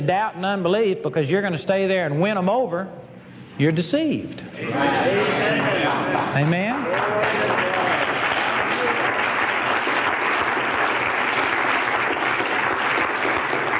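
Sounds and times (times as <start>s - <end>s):
speech: 0.0s - 3.0s, 3.6s - 7.4s
church congregation clapping: 6.2s - 13.7s.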